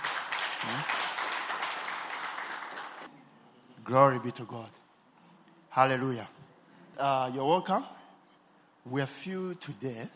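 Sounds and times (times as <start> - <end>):
hand clapping: 0.0 - 3.1
speech: 0.6 - 1.0, 3.9 - 4.8, 5.8 - 6.4, 7.0 - 8.0, 8.8 - 10.1.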